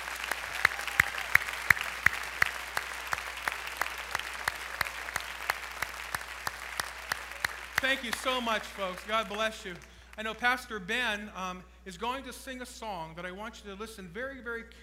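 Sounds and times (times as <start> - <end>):
audience applauding: 0.0 - 10.6
speech: 7.8 - 14.8.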